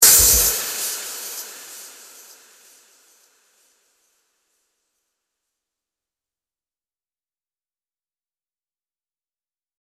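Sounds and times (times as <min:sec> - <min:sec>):
hi-hat: 0:00.0 - 0:04.2.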